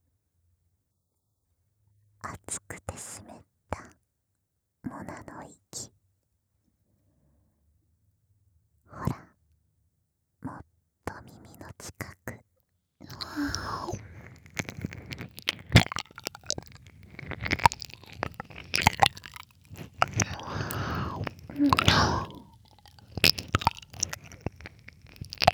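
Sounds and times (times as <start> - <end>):
ear licking relaxation sounds: 13.1 - 25.5.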